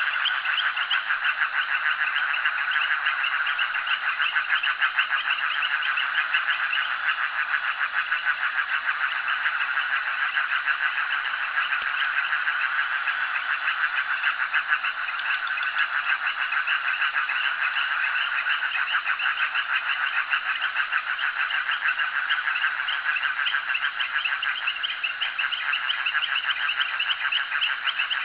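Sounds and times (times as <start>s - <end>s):
frogs at jetty: 0.0s - 28.2s.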